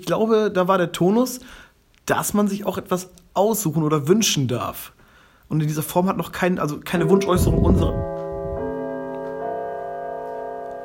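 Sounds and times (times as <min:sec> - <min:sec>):
speech: 0:00.0 - 0:08.2
bell ringing: 0:07.0 - 0:10.8.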